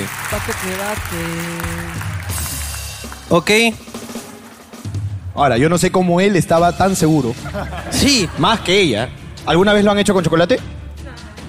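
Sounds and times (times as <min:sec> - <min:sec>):
audience clapping: 0:00.0 - 0:04.2
speech: 0:00.3 - 0:02.5, 0:03.3 - 0:03.9, 0:05.4 - 0:10.8
laughter: 0:07.3 - 0:09.1.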